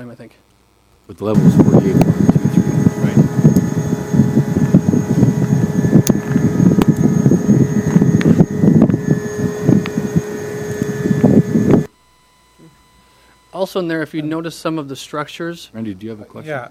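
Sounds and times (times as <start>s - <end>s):
speech: 0.0s - 2.3s, 13.7s - 16.7s
screechy vacuum-like grain dryer noise: 1.3s - 14.4s.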